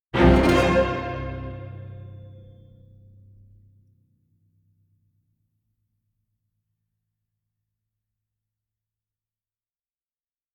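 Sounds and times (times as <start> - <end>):
orchestral hit: 0.2 - 2.7.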